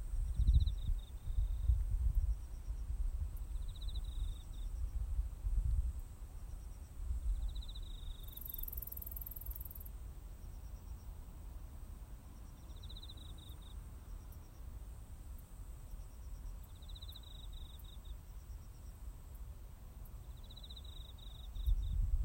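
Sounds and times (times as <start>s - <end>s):
cricket pulsed trill: 0.2s - 5.1s, 6.4s - 11.1s, 12.4s - 14.6s, 15.8s - 19.4s, 20.1s - 22.1s.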